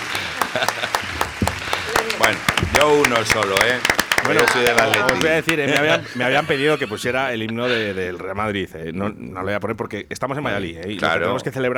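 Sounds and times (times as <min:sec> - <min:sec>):
applause: 0:00.0 - 0:06.6
laughter: 0:00.0 - 0:11.5
speech: 0:00.5 - 0:01.1, 0:02.1 - 0:11.7.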